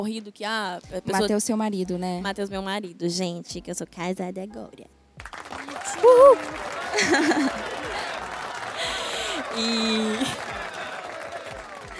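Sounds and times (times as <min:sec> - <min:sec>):
speech: 0:00.0 - 0:07.7, 0:09.6 - 0:10.5
applause: 0:05.2 - 0:11.9
laughter: 0:05.7 - 0:11.9.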